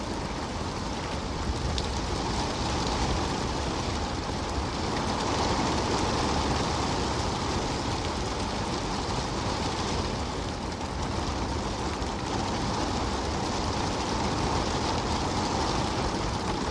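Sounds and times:
steady rain: 0.0s - 16.6s.

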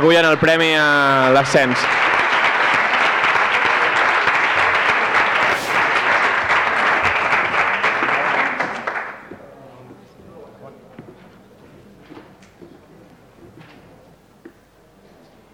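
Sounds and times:
speech: 0.0s - 2.2s
audience applause: 0.0s - 9.3s.

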